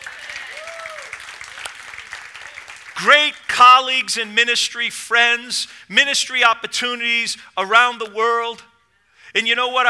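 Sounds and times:
audience clapping: 0.0 - 3.6
speech: 3.0 - 8.7, 9.3 - 9.8.

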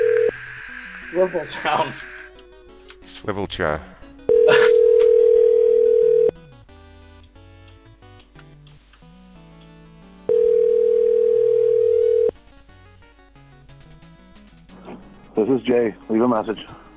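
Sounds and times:
outgoing phone call ringback tones: 0.0 - 1.2, 4.3 - 6.4, 10.3 - 12.4
speech: 1.1 - 2.1, 3.2 - 4.7, 15.5 - 16.9.

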